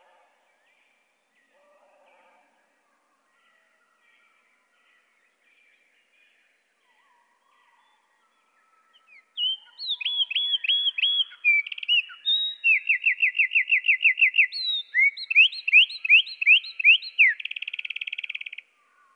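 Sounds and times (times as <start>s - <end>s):
Eurasian wren singing, lowered in pitch: 9.4s - 18.6s.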